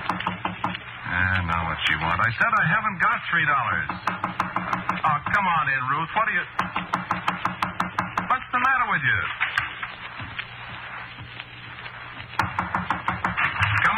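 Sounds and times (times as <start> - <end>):
knocking on a door: 0.0 - 0.8, 3.9 - 5.4, 6.6 - 8.3, 12.4 - 13.8
speech: 1.2 - 7.5, 9.0 - 9.6.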